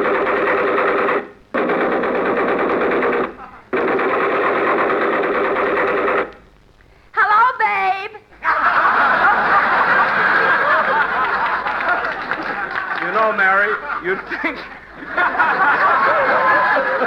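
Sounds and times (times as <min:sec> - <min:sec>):
pneumatic air hammers digging up street: 0:00.0 - 0:06.3
laughter: 0:03.3 - 0:03.7, 0:08.4 - 0:17.0.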